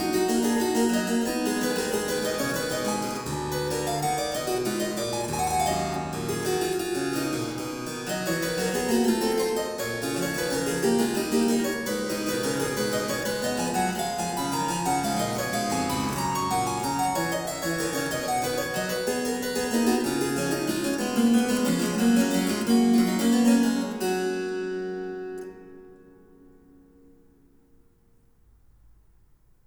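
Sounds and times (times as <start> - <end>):
harpsichord: 0.0 - 26.0.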